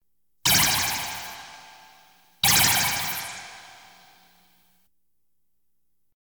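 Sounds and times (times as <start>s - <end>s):
science fiction effects: 0.5s - 4.2s
light beam sounds: 0.5s - 4.3s
laser shots: 0.5s - 4.4s.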